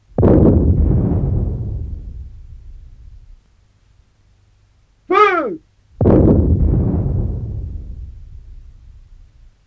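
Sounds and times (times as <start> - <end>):
cannon blasts from an artillery battery in a bombardment: 0.0 - 3.4, 6.0 - 9.5
man shouting a command: 5.1 - 5.6.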